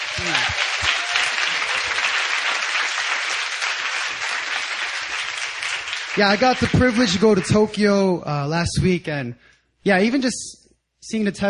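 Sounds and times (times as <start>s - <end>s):
audience applause: 0.0s - 7.8s
speech: 6.2s - 11.4s.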